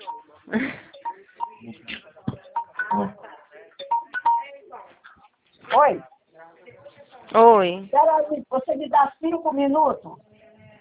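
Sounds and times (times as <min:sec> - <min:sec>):
telephone ringing: 0:00.0 - 0:01.7, 0:02.4 - 0:03.2, 0:03.8 - 0:04.5
speech: 0:00.5 - 0:00.8, 0:07.4 - 0:10.2.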